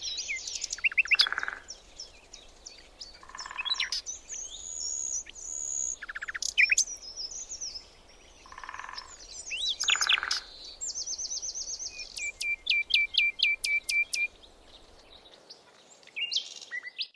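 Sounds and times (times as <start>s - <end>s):
bird singing short rising slurred notes: 0.0s - 14.9s.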